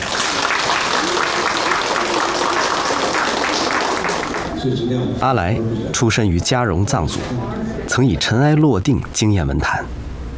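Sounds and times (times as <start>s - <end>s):
audience applause: 0.0s - 4.6s
speech: 4.6s - 10.1s.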